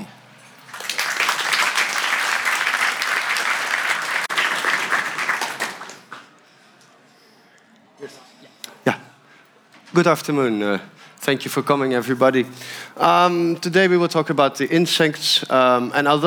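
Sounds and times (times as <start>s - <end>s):
audience applause: 0.0s - 6.3s
speech: 10.0s - 16.2s.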